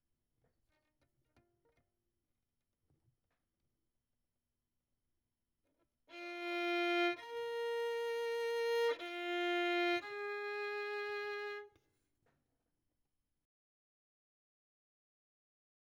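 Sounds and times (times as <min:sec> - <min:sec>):
violin: 0:06.1 - 0:11.8.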